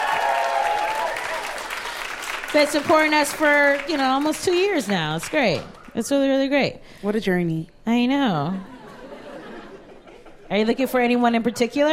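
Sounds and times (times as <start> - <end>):
clapping applause: 0.0 - 6.0
speech: 2.5 - 8.7, 10.5 - 11.9
laughter: 8.6 - 10.6.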